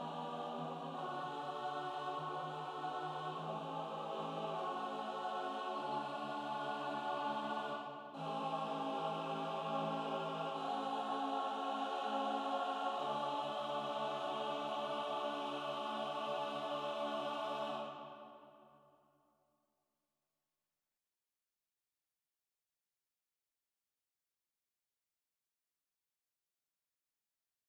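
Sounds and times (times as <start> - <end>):
SATB choir singing: 0.0 - 18.6.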